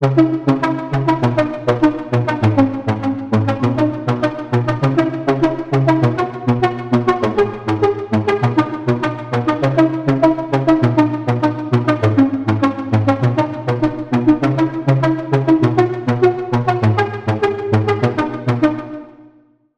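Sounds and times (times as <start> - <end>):
lead melody: 0.0 - 19.3.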